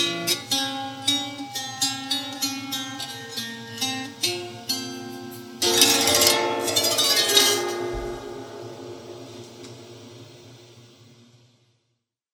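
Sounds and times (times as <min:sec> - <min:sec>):
dulcimer: 0:00.0 - 0:09.8.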